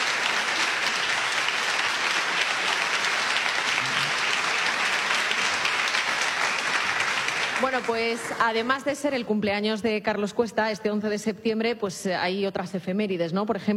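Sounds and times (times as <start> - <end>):
studio audience applauding: 0.0 - 9.1
speech: 7.7 - 13.7.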